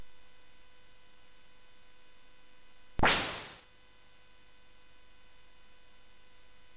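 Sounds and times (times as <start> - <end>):
CSG8580 chip sound effect: 3.0 - 3.6.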